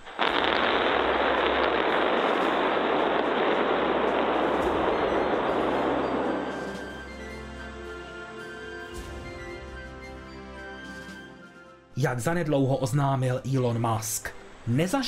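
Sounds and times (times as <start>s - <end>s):
rocket engines firing during static fire: 0.0s - 7.0s
speech: 12.0s - 15.0s.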